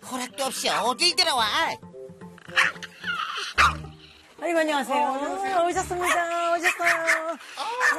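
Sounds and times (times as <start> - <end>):
speech: 0.5 - 1.9, 4.4 - 7.9
dog barking: 2.6 - 2.8, 3.6 - 3.8, 6.0 - 7.9.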